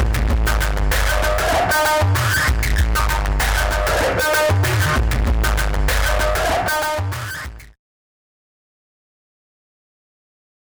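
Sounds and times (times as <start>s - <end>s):
electronica music: 0.0s - 7.8s.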